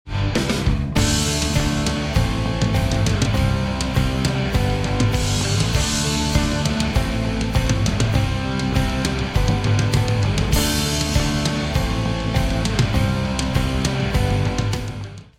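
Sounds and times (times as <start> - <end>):
rock music: 0.0 - 15.3.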